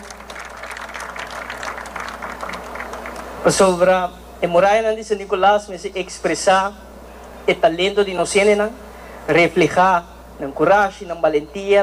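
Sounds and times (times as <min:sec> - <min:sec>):
audience applause: 0:00.0 - 0:03.5
speech: 0:03.4 - 0:11.8.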